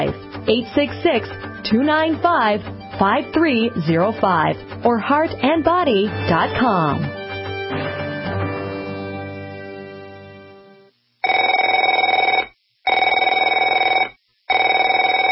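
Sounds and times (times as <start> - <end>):
speech: 0.0 - 7.9
telephone bell ringing: 11.2 - 15.3.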